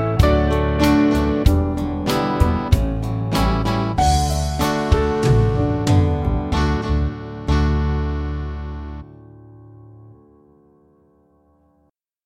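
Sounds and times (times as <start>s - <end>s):
band playing: 0.0s - 8.3s.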